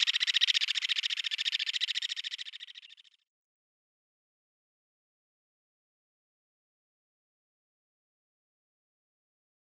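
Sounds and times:
wood sandpiper display calls in display flight: 0.0 - 3.0.

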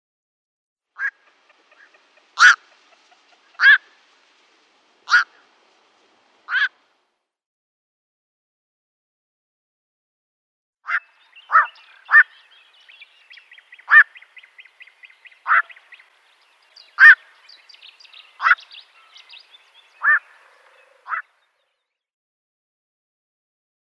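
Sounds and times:
black-crowned night heron croaking squawks: 1.0 - 4.0, 5.0 - 5.4, 6.5 - 6.8, 10.9 - 16.0, 16.8 - 21.4.

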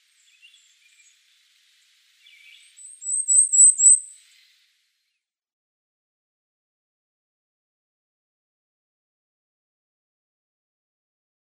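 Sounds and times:
Cape May Warbler song: 0.0 - 5.3.

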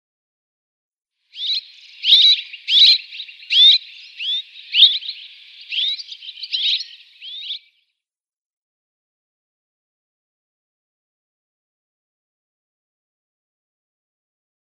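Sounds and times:
Red-rumped Swallow calls: 1.3 - 7.8.

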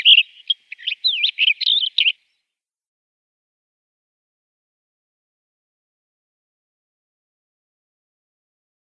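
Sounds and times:
Black Wheatear singing: 0.0 - 2.6.

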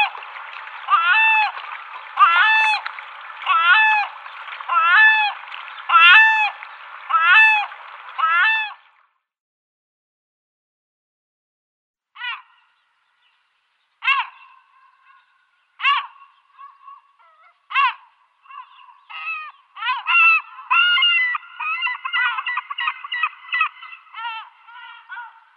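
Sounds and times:
Yellow-legged gull giving harsh laughing notes: 0.9 - 1.6, 2.2 - 2.8, 3.4 - 4.1, 4.7 - 8.8, 14.0 - 14.5, 15.8 - 25.5.

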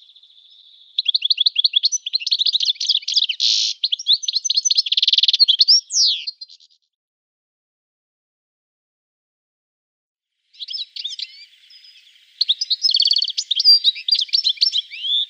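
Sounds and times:
European goldfinch song of rapid high twitters: 0.0 - 6.8, 10.5 - 15.2.

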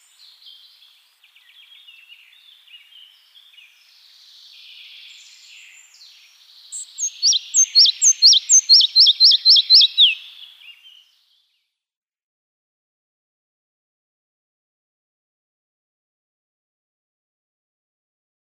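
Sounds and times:
red-breasted flycatcher song: 0.0 - 11.6.

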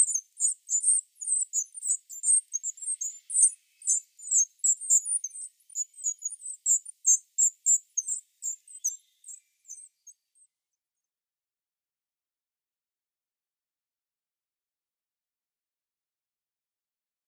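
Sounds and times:
Great Tit nestling: 0.0 - 10.1.

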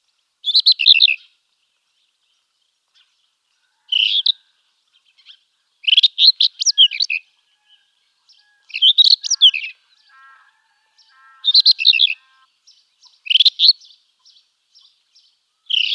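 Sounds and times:
rufous-tailed scrub robin song of sweet notes and warbled phrases: 0.4 - 1.3, 5.2 - 7.3, 8.7 - 15.0, 15.6 - 15.9.

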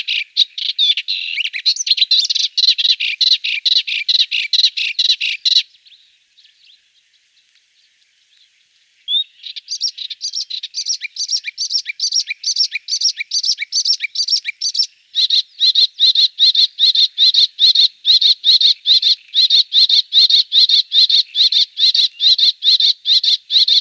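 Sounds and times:
melodious warbler singing: 0.0 - 23.7.

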